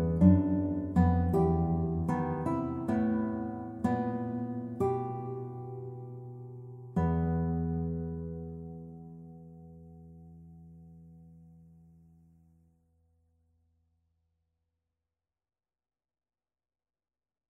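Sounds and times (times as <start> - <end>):
guitar: 0.0 - 13.2.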